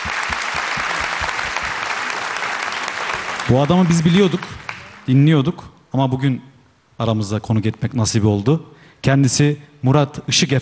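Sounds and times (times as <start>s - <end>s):
audience applause: 0.0s - 5.1s
speech: 3.5s - 10.5s.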